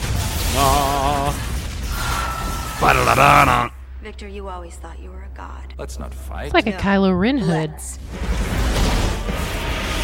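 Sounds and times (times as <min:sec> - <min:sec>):
explosions on a bridge: 0:00.0 - 0:03.8, 0:08.0 - 0:10.0
speech: 0:02.8 - 0:08.6.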